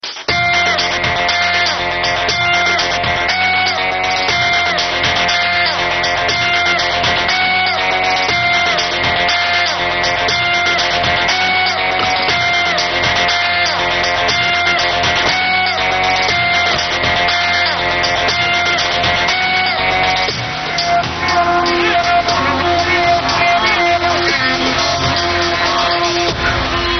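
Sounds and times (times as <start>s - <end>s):
background music: 0.0s - 26.9s.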